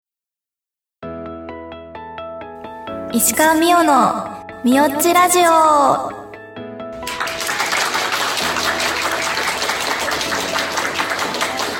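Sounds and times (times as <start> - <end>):
speech: 3.1 - 6.2
live audience applause at live recording: 7.0 - 11.7.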